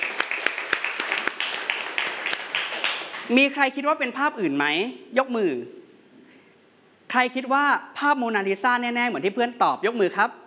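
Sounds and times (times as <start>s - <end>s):
students applauding: 0.0s - 3.4s
speech: 3.3s - 5.8s, 7.1s - 10.4s.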